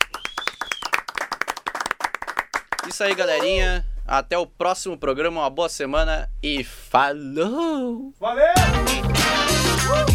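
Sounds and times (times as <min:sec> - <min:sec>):
audience clapping: 0:00.0 - 0:03.5
speech: 0:02.9 - 0:09.0.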